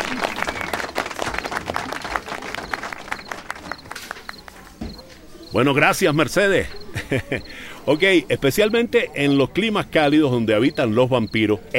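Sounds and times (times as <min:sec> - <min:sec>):
small audience clapping to acclaim a speaker at a talk: 0:00.0 - 0:04.8
speech: 0:05.5 - 0:11.7
laughter: 0:06.4 - 0:08.1.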